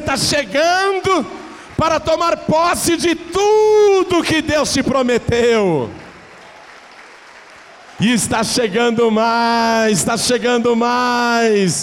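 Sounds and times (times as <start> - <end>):
speech: 0.1 - 6.0, 8.0 - 11.8
audience applauding: 5.7 - 9.0.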